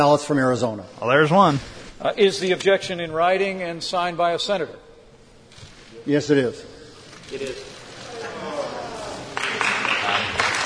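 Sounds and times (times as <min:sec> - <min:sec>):
speech: 0:00.0 - 0:04.9, 0:06.0 - 0:06.7, 0:07.3 - 0:08.5
many voices groaning in a large chamber: 0:08.0 - 0:09.4
scattered clapping: 0:09.3 - 0:10.6.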